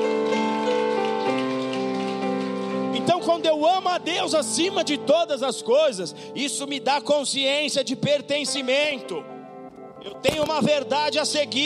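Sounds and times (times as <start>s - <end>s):
audience applause: 0.2s - 3.1s
speech: 3.3s - 9.3s, 10.0s - 11.6s.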